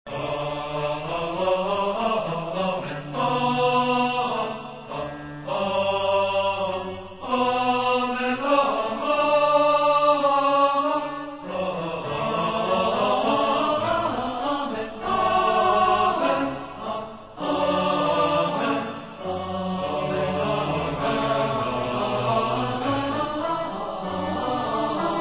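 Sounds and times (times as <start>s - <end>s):
choir singing: 0.1s - 25.1s
orchestra playing: 15.1s - 25.1s.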